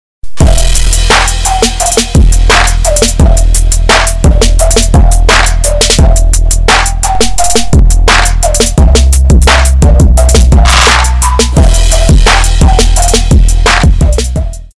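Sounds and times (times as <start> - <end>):
trap beat: 0.2 - 14.7.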